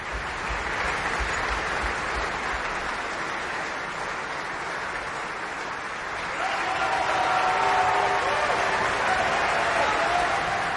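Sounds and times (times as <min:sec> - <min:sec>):
audience applause in opera house: 0:00.0 - 0:10.7
faint whistles or cheers: 0:06.2 - 0:10.7.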